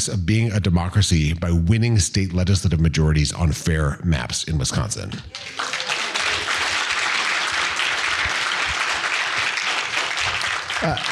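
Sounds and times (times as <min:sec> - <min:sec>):
speech: 0:00.0 - 0:05.9, 0:10.8 - 0:11.1
crowd clapping and cheering: 0:05.2 - 0:11.1.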